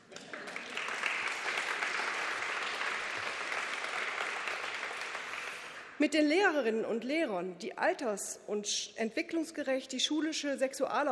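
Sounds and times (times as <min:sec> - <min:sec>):
audience applause: 0:00.0 - 0:05.9
speech: 0:06.0 - 0:11.1.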